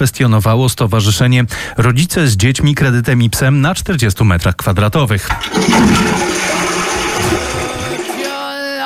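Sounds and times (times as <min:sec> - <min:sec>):
speech: 0:00.0 - 0:06.6
toilet flushing: 0:05.2 - 0:08.7.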